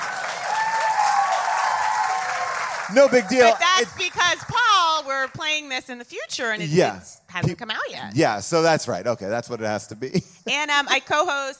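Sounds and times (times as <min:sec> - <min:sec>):
audience applause: 0:00.0 - 0:05.3
speech: 0:02.9 - 0:11.5.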